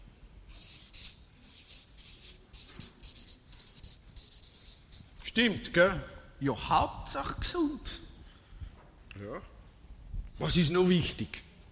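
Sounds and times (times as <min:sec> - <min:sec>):
person writing with squeaking strokes: 0:00.5 - 0:05.3
speech: 0:05.4 - 0:08.0, 0:09.2 - 0:09.5, 0:10.4 - 0:11.5.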